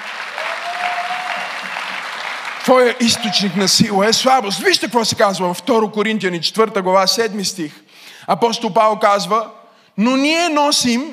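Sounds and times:
audience applause: 0:00.0 - 0:04.0
speech: 0:02.7 - 0:11.1.

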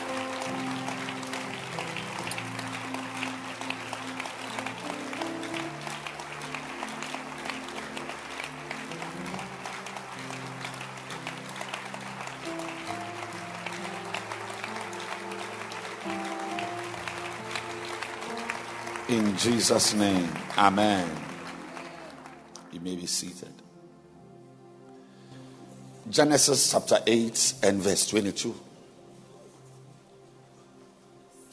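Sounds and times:
audience clapping hands: 0:00.0 - 0:23.4
speech: 0:19.1 - 0:21.3, 0:22.8 - 0:23.6, 0:26.1 - 0:28.7.

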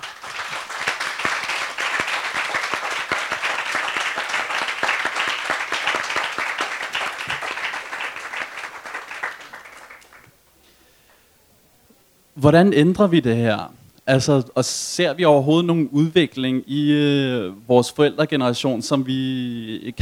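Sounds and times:
audience applause: 0:00.0 - 0:12.0
speech: 0:12.4 - 0:20.0.

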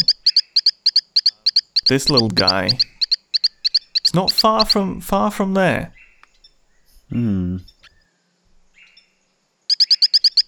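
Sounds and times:
small Brazilian tree frog calling: 0:00.0 - 0:06.9, 0:09.7 - 0:10.4
speech: 0:01.9 - 0:02.8, 0:04.2 - 0:06.0, 0:07.1 - 0:07.7.

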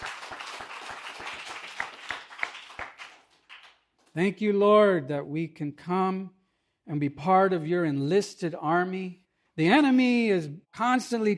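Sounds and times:
audience clapping: 0:00.0 - 0:04.1
speech: 0:04.2 - 0:11.3.

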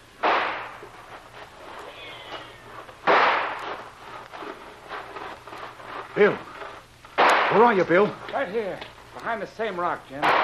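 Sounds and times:
faint crackling noise: 0:00.0 - 0:10.4
two gunshots fired as a signal to charge: 0:00.2 - 0:00.8, 0:03.0 - 0:03.8, 0:07.2 - 0:07.8, 0:10.2 - 0:10.4
speech: 0:06.2 - 0:06.5, 0:07.5 - 0:10.4.

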